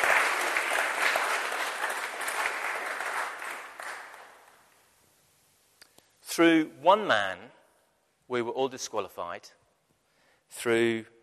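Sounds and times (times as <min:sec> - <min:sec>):
audience applause: 0:00.0 - 0:04.6
speech: 0:06.4 - 0:07.6, 0:08.3 - 0:09.6, 0:10.5 - 0:11.2.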